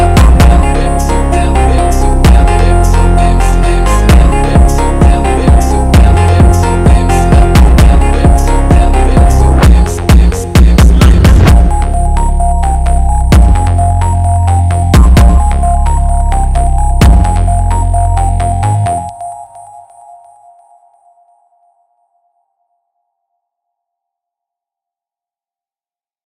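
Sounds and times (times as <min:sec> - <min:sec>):
phonk music: 0:00.0 - 0:20.4.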